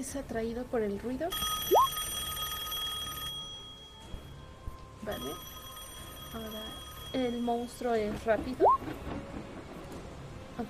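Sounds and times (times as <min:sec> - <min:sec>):
speech: 0:00.0 - 0:01.8, 0:05.0 - 0:05.6, 0:06.3 - 0:09.6
telephone ringing with bright electronic trill: 0:01.3 - 0:08.0.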